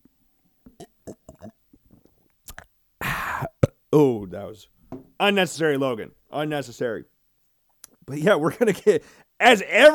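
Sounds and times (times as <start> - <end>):
person sipping water close to the microphone: 0.6 - 3.8
speech: 3.9 - 7.1, 8.1 - 9.9.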